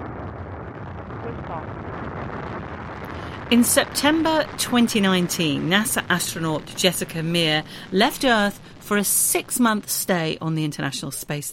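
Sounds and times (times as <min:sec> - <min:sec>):
rocket engines at maximum thrust during launch: 0:00.0 - 0:11.0
speech: 0:01.3 - 0:02.5, 0:03.5 - 0:11.5.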